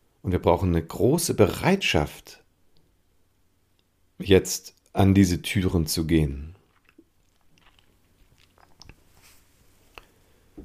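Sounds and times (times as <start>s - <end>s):
speech: 0.2s - 2.4s, 4.2s - 6.6s
person sipping water: 6.5s - 10.2s.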